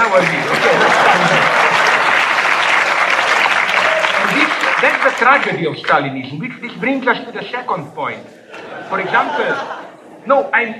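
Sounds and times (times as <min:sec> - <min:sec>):
laughter: 0:00.0 - 0:02.5, 0:08.4 - 0:10.5
audience applause: 0:00.0 - 0:06.2
speech: 0:00.2 - 0:00.6, 0:05.1 - 0:10.7.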